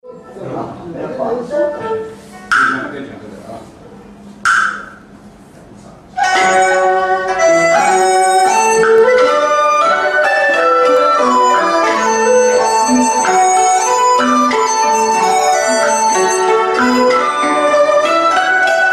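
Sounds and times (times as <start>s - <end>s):
Chinese silk and bamboo ensemble: 0.0s - 18.9s.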